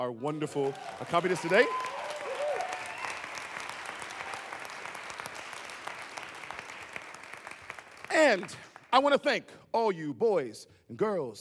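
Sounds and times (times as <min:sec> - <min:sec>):
speech: 0:00.0 - 0:02.1, 0:08.2 - 0:11.3
audience applause: 0:00.5 - 0:08.8.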